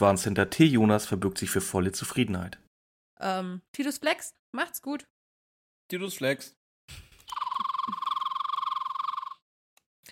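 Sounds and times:
speech: 0:00.0 - 0:05.1, 0:05.9 - 0:07.4
red-breasted flycatcher call: 0:07.3 - 0:09.4.

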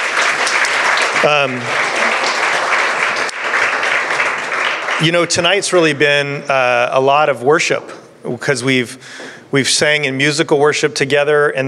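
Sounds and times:
audience applause: 0:00.0 - 0:05.6
speech: 0:01.2 - 0:02.2, 0:05.0 - 0:11.6.

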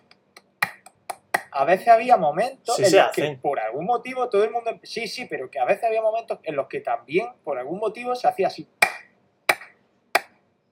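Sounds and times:
rhythmic hand clapping, stadium style: 0:00.4 - 0:01.5, 0:08.8 - 0:10.3
speech: 0:01.6 - 0:08.8.

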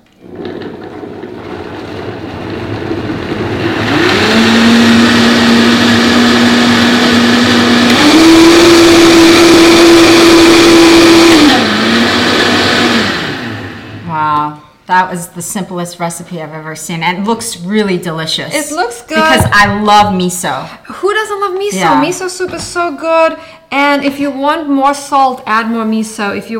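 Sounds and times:
blender blending ingredients: 0:00.0 - 0:14.0
speech: 0:15.0 - 0:26.5.

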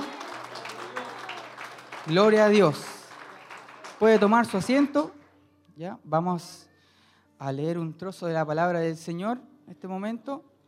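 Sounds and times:
audience clapping: 0:00.0 - 0:05.3
speech: 0:02.1 - 0:02.9, 0:04.0 - 0:05.2, 0:05.8 - 0:06.7, 0:07.4 - 0:10.5.

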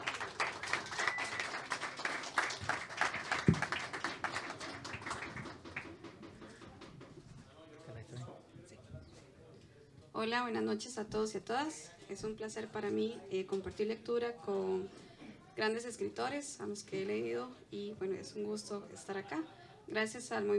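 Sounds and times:
audience applause: 0:00.0 - 0:07.0
murmuring voices: 0:00.0 - 0:09.9
speech: 0:10.2 - 0:15.0, 0:15.6 - 0:20.5.

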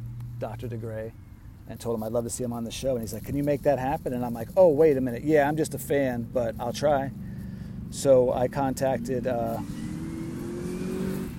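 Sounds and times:
speech: 0:00.4 - 0:07.3, 0:07.9 - 0:09.8
car speeding past on Shoreline Drive: 0:09.5 - 0:11.3.

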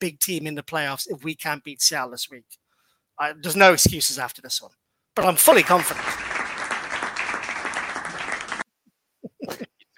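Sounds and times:
speech: 0:00.0 - 0:02.6, 0:03.2 - 0:06.3
round of applause: 0:05.2 - 0:08.7.

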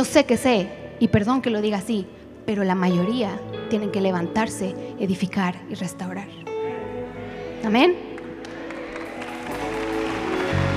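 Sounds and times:
speech: 0:00.0 - 0:06.4, 0:07.6 - 0:08.1
audience applause: 0:08.2 - 0:10.7.

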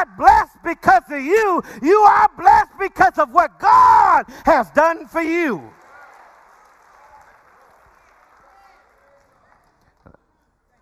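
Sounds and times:
speech: 0:00.1 - 0:05.8
audience clapping: 0:05.5 - 0:10.8.

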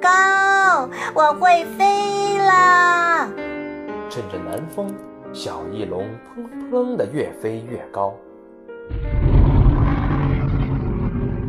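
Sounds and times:
speech: 0:01.1 - 0:03.4, 0:04.1 - 0:08.3
low hum: 0:08.9 - 0:11.4
tyrannosaurus roaring: 0:08.9 - 0:11.4.

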